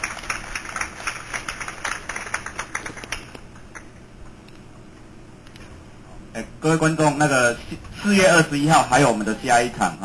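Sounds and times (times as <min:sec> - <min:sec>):
audience applause: 0:00.0 - 0:03.9
speech: 0:06.6 - 0:10.0.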